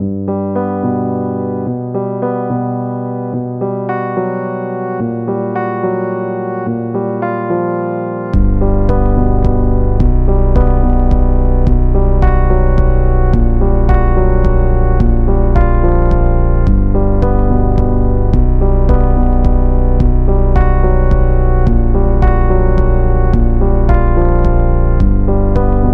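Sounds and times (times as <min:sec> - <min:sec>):
piano playing in G: 0:00.2 - 0:25.9.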